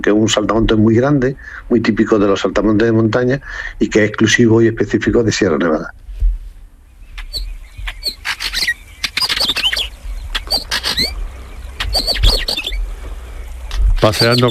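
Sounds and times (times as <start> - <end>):
speech: 0.0 - 6.0, 14.0 - 14.4
northern wheatear chirping: 6.8 - 14.4
northern wheatear wingbeats fluttering: 7.1 - 14.4.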